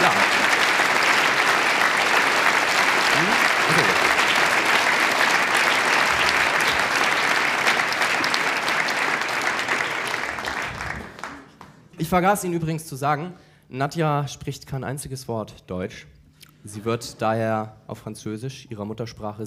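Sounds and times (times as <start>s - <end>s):
loud applause from a large audience: 0.0s - 11.7s
speech: 12.1s - 19.4s.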